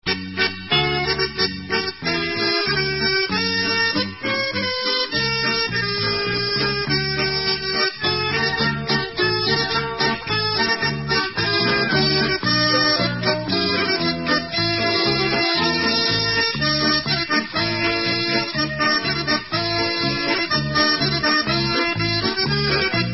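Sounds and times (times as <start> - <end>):
instrumental Israeli dance music: 0.1 - 23.1.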